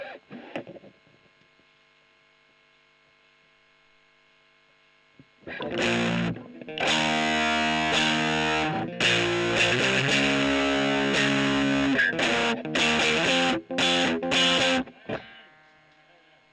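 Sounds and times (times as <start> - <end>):
electric guitar recorded with a Gefell microphone: 0.0 - 1.4, 5.2 - 16.5.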